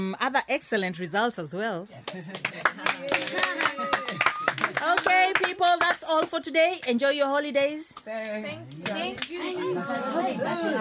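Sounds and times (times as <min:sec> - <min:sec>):
speech: 0:00.0 - 0:10.8
class applauding a student for coming top: 0:02.1 - 0:07.0, 0:08.7 - 0:09.4.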